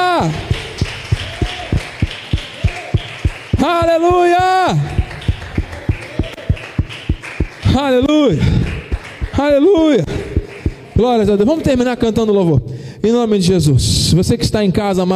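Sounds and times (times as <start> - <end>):
audience clapping in steady unison: 0.0 - 11.5
speech: 3.6 - 4.8, 9.3 - 10.1, 11.0 - 15.1.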